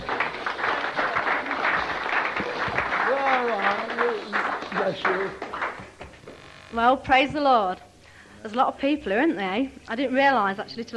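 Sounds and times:
audience clapping for next speaker: 0.0 - 6.4
speech: 6.7 - 10.9.

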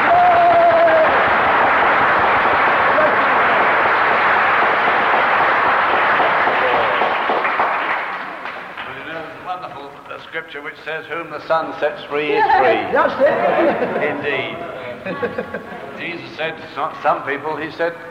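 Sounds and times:
audience clapping: 0.0 - 9.3
speech: 10.7 - 18.0
laughter: 12.4 - 16.0.

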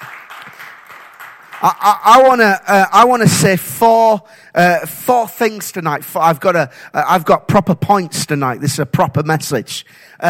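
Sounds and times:
audience applause: 0.0 - 2.0
speech: 1.6 - 10.2.

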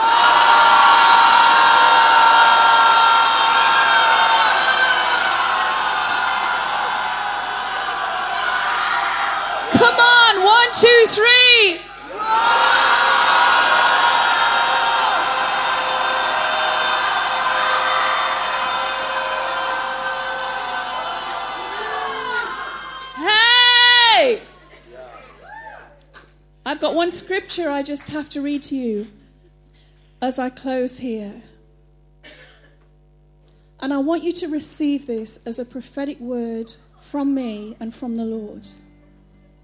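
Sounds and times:
crowd roaring imitating a lion: 0.0 - 26.0
speech: 10.8 - 11.8, 26.8 - 29.2, 30.2 - 31.5, 33.8 - 38.8.

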